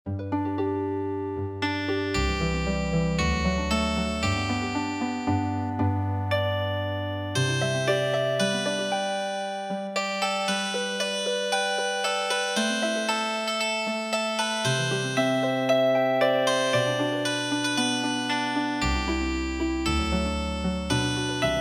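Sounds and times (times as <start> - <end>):
healing harp music: 0.1 - 13.5, 14.5 - 21.5.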